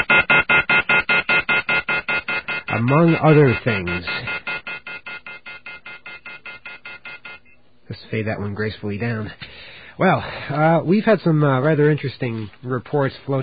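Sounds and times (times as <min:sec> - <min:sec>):
telephone off-hook warning tone: 0:00.0 - 0:07.6
speech: 0:02.9 - 0:04.3, 0:08.1 - 0:09.4, 0:10.0 - 0:13.4.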